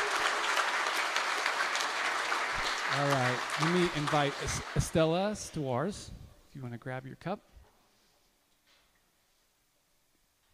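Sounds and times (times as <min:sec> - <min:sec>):
audience applause for a performer: 0:00.0 - 0:05.7
speech: 0:02.9 - 0:07.5.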